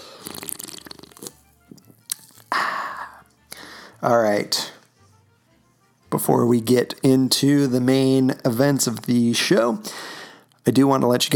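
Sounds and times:
orange vanilla Coke Zero can opening: 0:00.2 - 0:02.5
speech: 0:04.0 - 0:04.7, 0:06.2 - 0:10.1, 0:10.7 - 0:11.3.

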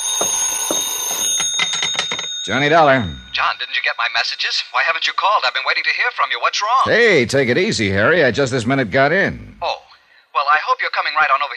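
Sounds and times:
telephone ringing: 0:00.0 - 0:06.9
speech: 0:02.4 - 0:09.8, 0:10.4 - 0:11.5.

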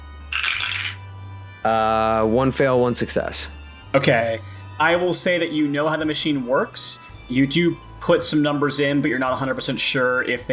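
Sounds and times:
dice being rolled: 0:00.3 - 0:01.0
speech: 0:01.6 - 0:10.5.

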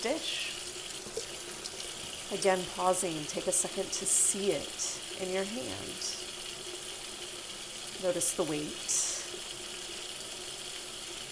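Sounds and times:
speech: 0:00.0 - 0:00.5, 0:02.3 - 0:06.2, 0:08.0 - 0:08.9
running tap water over a dish in a sink: 0:00.0 - 0:11.3.

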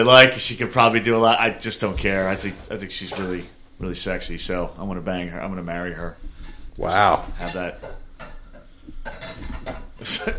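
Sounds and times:
speech: 0:00.0 - 0:08.0, 0:09.0 - 0:10.3
broken pieces pushed under a table: 0:01.8 - 0:03.6.

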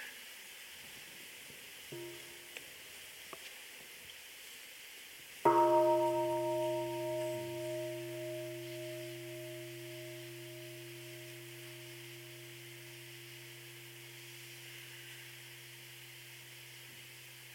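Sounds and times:
bell ringing: 0:02.0 - 0:02.5, 0:05.5 - 0:17.5.

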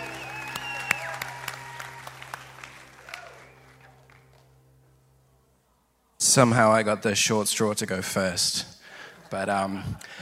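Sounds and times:
scattered audience applause: 0:00.0 - 0:04.5
speech: 0:06.3 - 0:08.7, 0:09.3 - 0:10.2.

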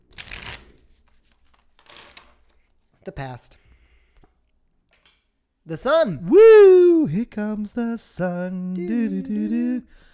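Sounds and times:
tarot cards being shuffled: 0:00.1 - 0:02.8
speech: 0:03.1 - 0:03.7, 0:05.7 - 0:10.1.

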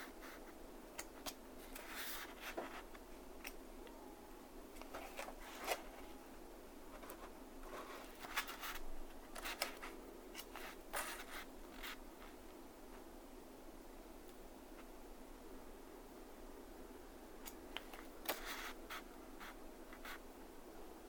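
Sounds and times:
steady low hum and soft hiss: 0:00.0 - 0:21.0
book pages turning at a desk: 0:01.0 - 0:03.6, 0:04.8 - 0:06.2, 0:07.0 - 0:12.4, 0:17.8 - 0:19.0.

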